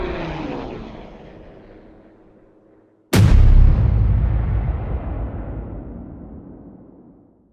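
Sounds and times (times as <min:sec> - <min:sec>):
air strike: 0:03.1 - 0:07.2.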